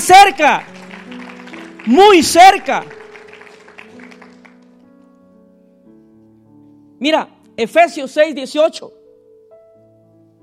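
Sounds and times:
speech: 0.1 - 0.8, 1.8 - 3.0, 7.0 - 9.0
audience applauding: 0.2 - 4.8.

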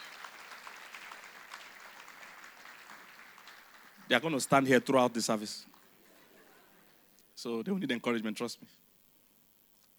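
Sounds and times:
audience applause: 0.0 - 5.9
speech: 4.1 - 5.8, 7.4 - 8.8.

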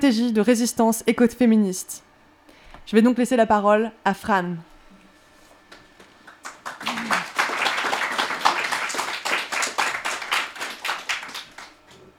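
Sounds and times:
speech: 0.0 - 2.1, 2.9 - 4.7
audience applause: 6.3 - 11.8.

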